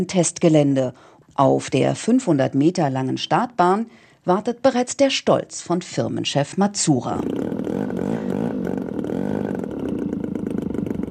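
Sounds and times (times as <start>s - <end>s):
speech: 0.0s - 8.3s
drone aircraft taking off: 7.2s - 11.0s.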